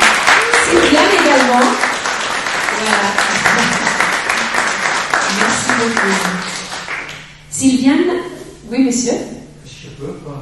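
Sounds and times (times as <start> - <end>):
audience applauding the organising committee: 0.0 - 7.3
speech: 7.6 - 9.4.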